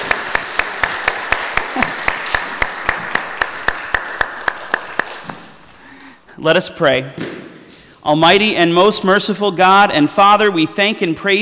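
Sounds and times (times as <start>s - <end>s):
audience applause: 0.0s - 6.3s
speech: 6.4s - 7.4s, 8.0s - 11.3s.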